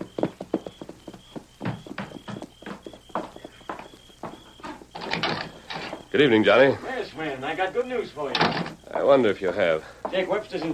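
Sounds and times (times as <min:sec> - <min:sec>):
horses' hooves clip-clopping: 0:00.0 - 0:06.7, 0:10.0 - 0:10.7
speech: 0:06.1 - 0:10.7.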